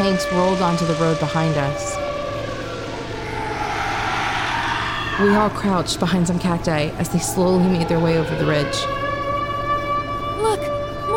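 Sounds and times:
speech: 0.0 - 2.0, 5.2 - 9.0
alarm siren: 0.0 - 11.1.

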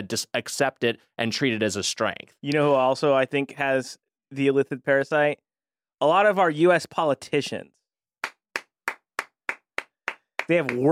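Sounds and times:
speech: 0.0 - 5.4, 6.0 - 7.8, 10.5 - 10.9
two people clapping in studio: 8.2 - 10.9.

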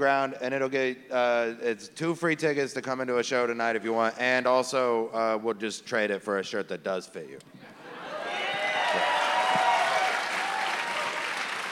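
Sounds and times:
speech: 0.0 - 7.6
faint cheers: 8.1 - 11.7
comedy club audience clapping: 8.3 - 11.7.

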